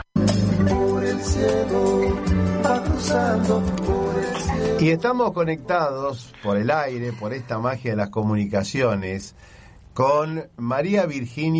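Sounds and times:
thrush (zorzal) singing: 0:00.2 - 0:05.7
speech: 0:04.8 - 0:11.5.

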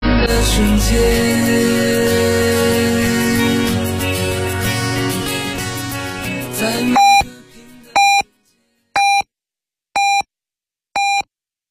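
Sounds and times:
music: 0:00.0 - 0:08.9
speech: 0:00.3 - 0:02.0
radio time signal pips marking midnight: 0:07.0 - 0:07.3, 0:08.0 - 0:08.2, 0:09.0 - 0:09.2.

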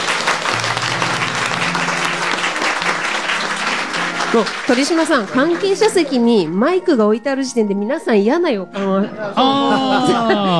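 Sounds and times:
laughter: 0:00.0 - 0:06.5, 0:08.8 - 0:10.5
audience clapping for the author of the original work: 0:00.0 - 0:06.6
speech: 0:04.4 - 0:10.5.

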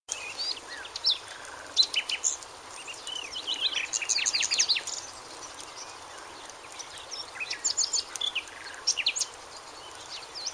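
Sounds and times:
bird song: 0:00.1 - 0:10.5.

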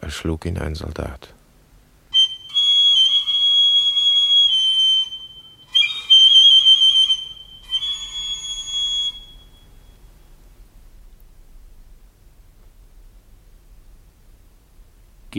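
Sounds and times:
speech: 0:00.1 - 0:01.4
shrill whistle blasts on a small pipe: 0:02.1 - 0:10.1.

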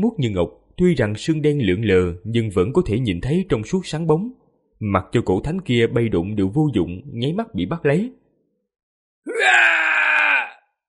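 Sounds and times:
speech: 0:00.0 - 0:08.2
agonized scream: 0:09.3 - 0:10.8.

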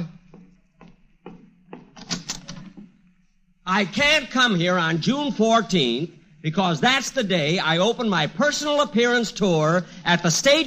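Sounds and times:
waiting room door being opened: 0:00.8 - 0:03.0
speech: 0:03.7 - 0:10.6.

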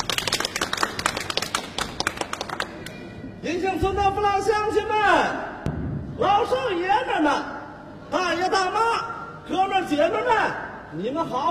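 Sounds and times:
audience clapping welcoming a speaker in a staged Chinese folk comedy scene: 0:00.0 - 0:03.0
speech: 0:03.4 - 0:05.5, 0:06.2 - 0:11.4.

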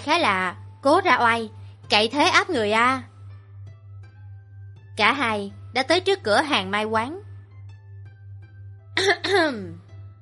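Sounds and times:
low steady hum: 0:00.0 - 0:10.1
speech: 0:00.1 - 0:03.1, 0:05.0 - 0:07.3, 0:09.0 - 0:09.8
man's light throat clearing stepping into a matchmaker's shop: 0:09.0 - 0:09.8.

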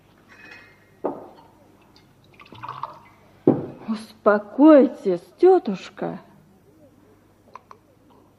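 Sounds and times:
water pouring into a glass: 0:02.0 - 0:03.2
speech: 0:03.9 - 0:06.3.

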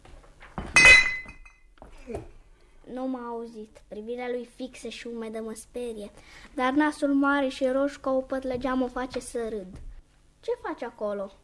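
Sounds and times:
glass bottles clinking: 0:00.7 - 0:01.7
speech: 0:02.1 - 0:02.3, 0:02.9 - 0:11.4.

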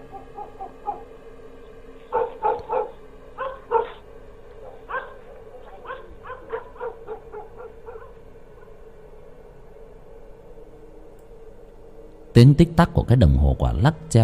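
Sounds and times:
dogs barking at the far end of the village at night: 0:00.0 - 0:09.2
steady low hum: 0:00.0 - 0:14.2
speech: 0:12.4 - 0:14.2.

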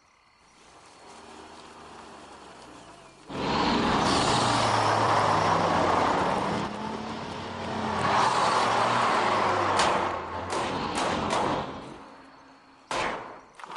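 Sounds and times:
fire truck engine: 0:00.6 - 0:12.4.

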